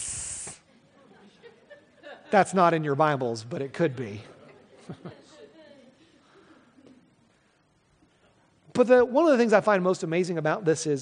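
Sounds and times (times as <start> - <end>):
person imitating a hiss: 0.0 - 0.7
laughter: 0.7 - 2.6, 4.2 - 7.1
speech: 2.3 - 4.3, 4.9 - 5.2, 8.8 - 11.0.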